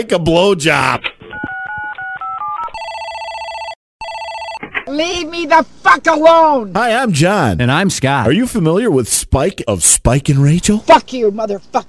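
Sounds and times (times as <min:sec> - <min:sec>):
speech: 0:00.0 - 0:01.1, 0:04.9 - 0:11.8
telephone keypad tones: 0:01.3 - 0:04.6.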